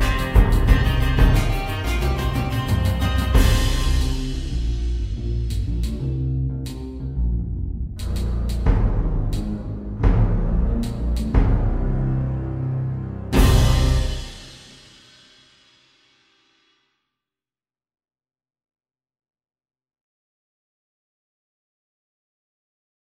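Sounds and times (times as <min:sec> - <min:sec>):
funk music: 0:00.0 - 0:14.7.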